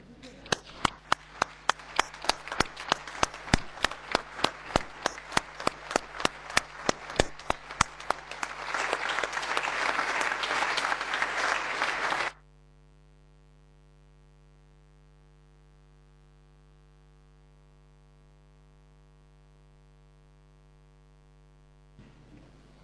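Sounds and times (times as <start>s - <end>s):
standing audience applause: 0.5s - 12.4s.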